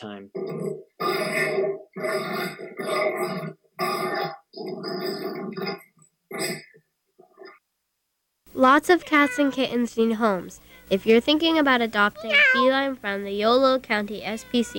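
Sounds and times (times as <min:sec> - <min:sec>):
speech: 0:00.0 - 0:03.6, 0:08.6 - 0:14.7
dogs grunting: 0:00.2 - 0:07.6.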